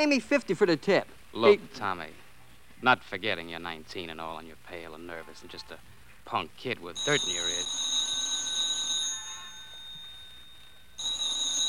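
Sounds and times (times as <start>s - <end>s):
speech: 0.0s - 2.2s, 2.8s - 7.9s
telephone bell ringing in high-pitched bursts: 7.0s - 11.6s.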